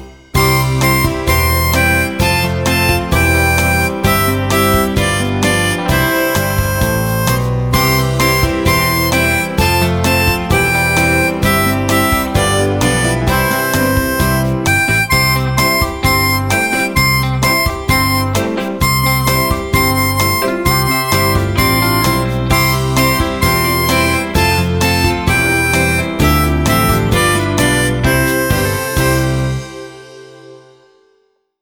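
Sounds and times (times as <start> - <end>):
blues harmonica: 0.3 - 30.5.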